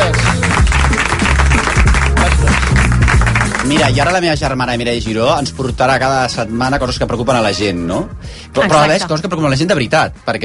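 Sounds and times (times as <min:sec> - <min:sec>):
applause: 0:00.0 - 0:04.2
speech: 0:03.7 - 0:10.4.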